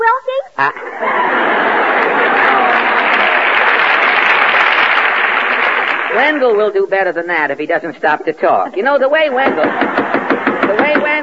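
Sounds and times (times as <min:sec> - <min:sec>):
speech: 0:00.6 - 0:00.8, 0:06.2 - 0:10.1
laughter: 0:00.6 - 0:06.1, 0:08.5 - 0:11.2
knocking on a door: 0:09.4 - 0:11.2.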